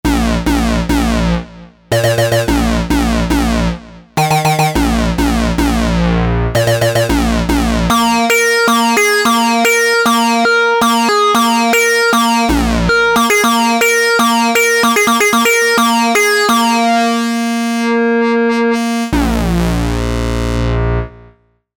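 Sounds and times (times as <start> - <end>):
bass: 0.0 - 21.7.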